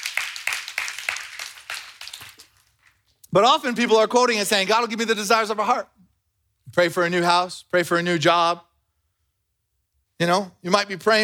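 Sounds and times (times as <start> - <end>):
audience clapping: 0.0 - 3.2
speech: 3.3 - 5.9, 6.8 - 8.7, 10.2 - 11.2.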